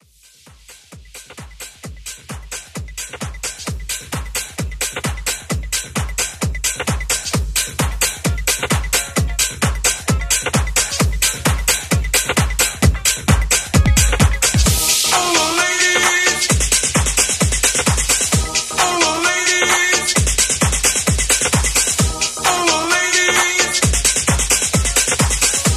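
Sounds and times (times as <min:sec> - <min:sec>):
90s funk house music at 131 BPM: 0:00.1 - 0:25.7.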